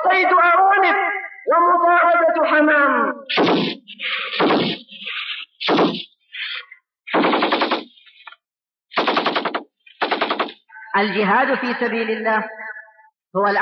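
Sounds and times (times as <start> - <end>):
speech: 0.1 - 4.8, 11.0 - 12.6, 13.3 - 13.6
machine gun fire: 3.3 - 4.8, 5.6 - 6.1, 7.1 - 8.0, 8.9 - 10.6.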